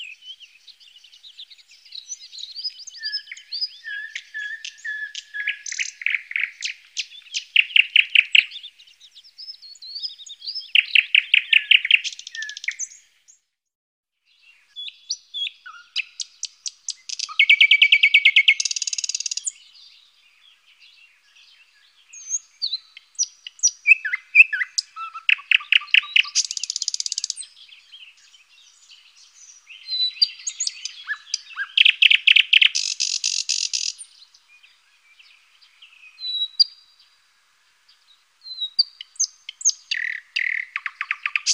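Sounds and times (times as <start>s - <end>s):
thrush nightingale singing: 0.0s - 13.5s, 14.2s - 41.5s.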